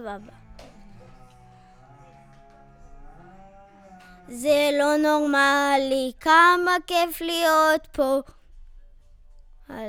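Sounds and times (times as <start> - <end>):
vocals: 0.0 - 1.7, 4.0 - 8.3.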